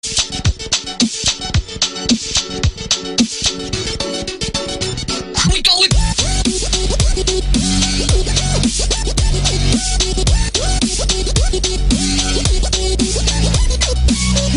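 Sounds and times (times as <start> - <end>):
music beat: 0.0 - 14.5.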